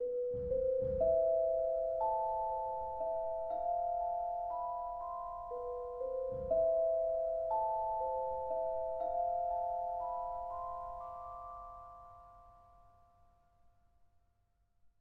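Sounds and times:
low-key mountain village background music: 0.0s - 12.1s.

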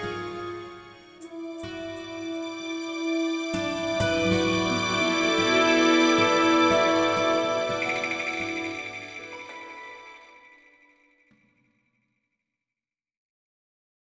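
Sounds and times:
hot spring cave ambience: 1.1s - 10.6s.

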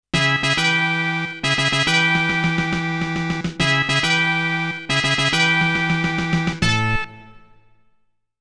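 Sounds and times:
battle victory music: 0.1s - 7.6s.

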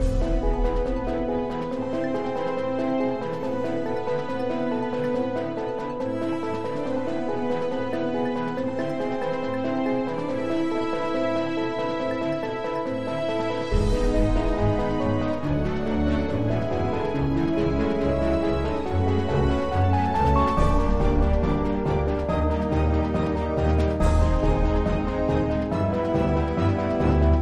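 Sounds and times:
galactic mini battle music: 0.0s - 27.4s.

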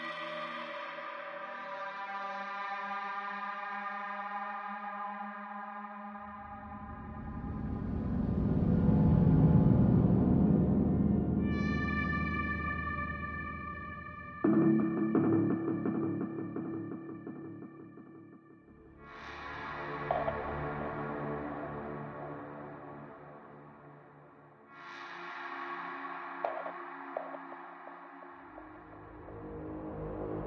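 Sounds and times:
ambient music: 6.2s - 30.4s.

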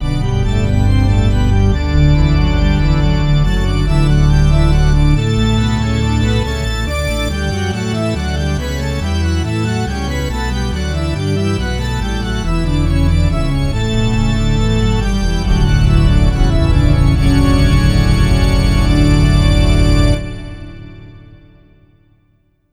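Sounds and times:
church organ: 0.0s - 22.2s.

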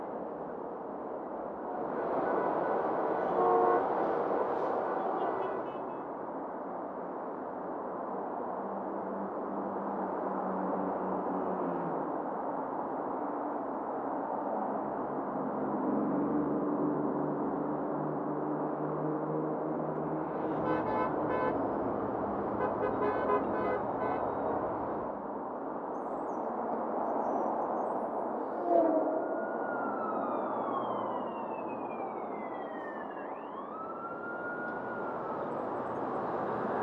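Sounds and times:
urban ambience: 0.0s - 36.8s.

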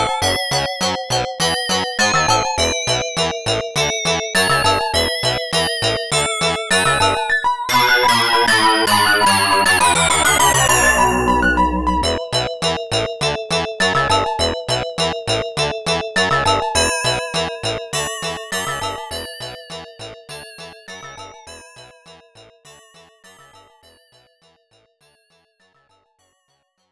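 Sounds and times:
arcade boss music: 0.0s - 21.4s.

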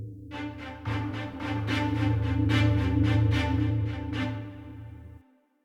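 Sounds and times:
intro music: 0.3s - 5.3s.

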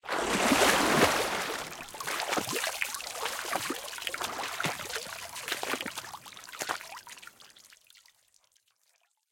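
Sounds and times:
lagoon splash: 0.0s - 7.1s.

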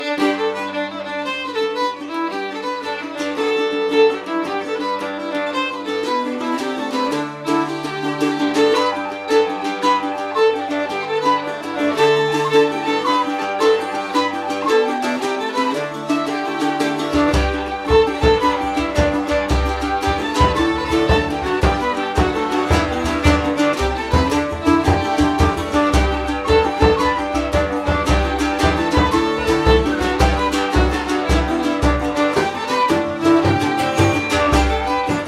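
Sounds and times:
orchestra ambience: 0.0s - 35.2s.

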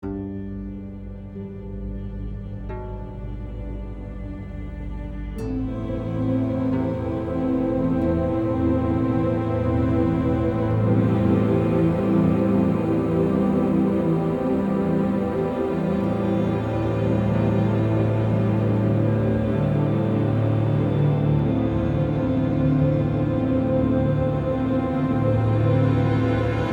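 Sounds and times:
tense music loop: 0.0s - 26.7s.

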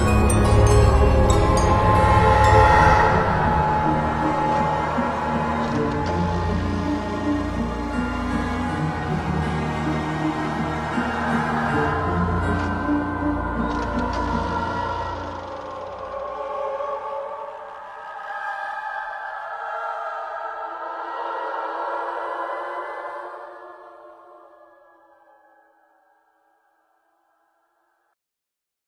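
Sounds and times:
orchestral music: 0.0s - 18.3s.

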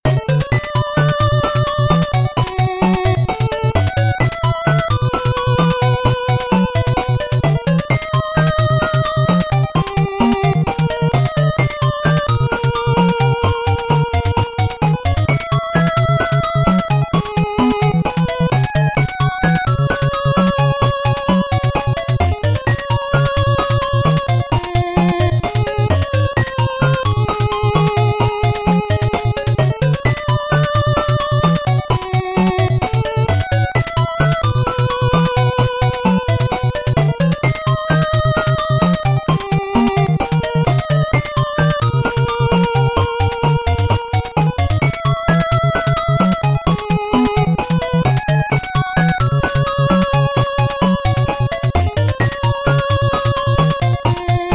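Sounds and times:
8-bit background music: 0.0s - 54.5s.

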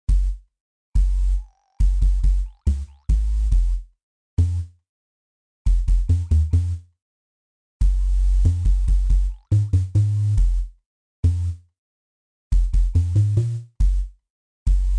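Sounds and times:
robot bass: 0.1s - 4.7s, 5.7s - 6.8s, 7.8s - 11.6s, 12.5s - 14.9s.

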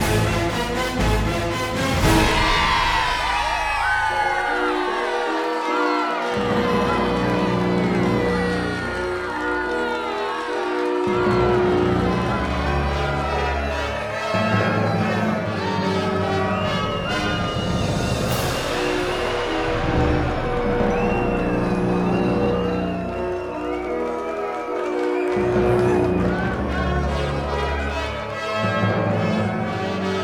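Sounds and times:
winning music: 0.0s - 30.1s.

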